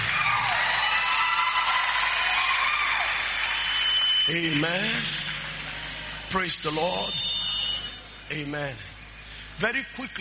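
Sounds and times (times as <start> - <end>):
scattered shouts and whoops: 0.0 - 4.2
large audience clapping: 0.0 - 7.2
speech: 4.3 - 5.4, 6.3 - 7.3, 8.3 - 8.9, 9.6 - 10.1.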